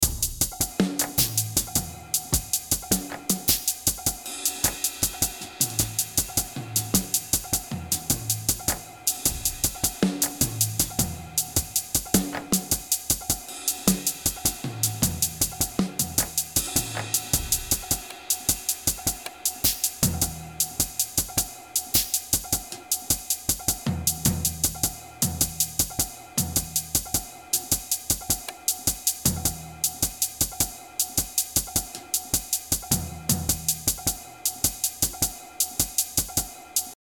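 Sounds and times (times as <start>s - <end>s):
drums: 0.0s - 36.9s.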